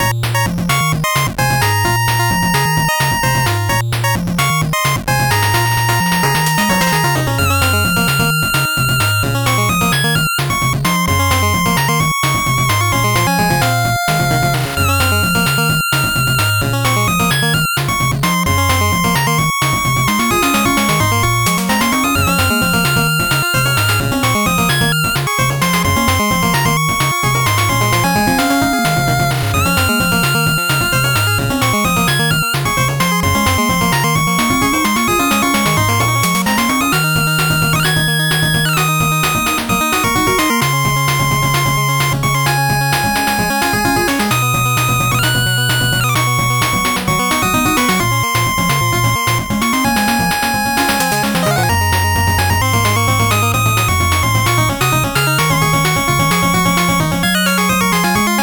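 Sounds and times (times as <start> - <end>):
slow 8-bit background music: 0.0 - 58.4.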